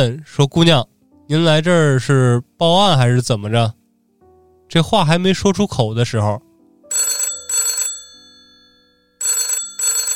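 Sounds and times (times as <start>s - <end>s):
speech: 0.0s - 3.8s, 4.7s - 7.1s
urgent telephone ringing: 6.9s - 10.1s.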